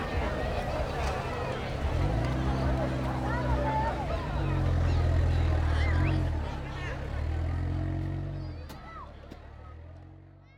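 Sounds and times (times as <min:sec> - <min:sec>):
people at a campsite in Corrientes Argentina: 0:00.0 - 0:07.4.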